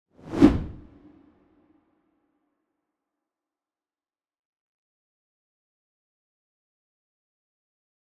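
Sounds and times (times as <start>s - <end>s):
swoosh: 0.2s - 1.2s.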